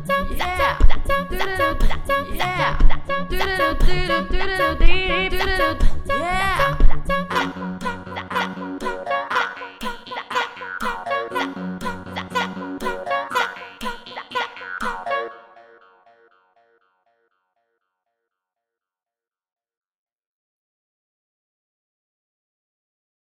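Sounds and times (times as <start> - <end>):
ringtone: 0.1 - 13.9, 14.8 - 16.1.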